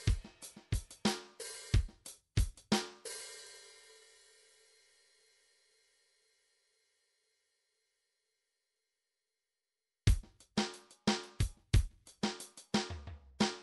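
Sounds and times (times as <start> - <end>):
midi drums: 0.0 - 3.3, 10.1 - 13.6.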